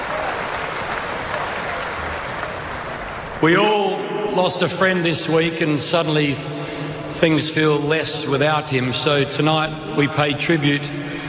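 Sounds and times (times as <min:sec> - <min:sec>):
large crowd applauding: 0:00.0 - 0:03.9
speech: 0:03.4 - 0:11.2.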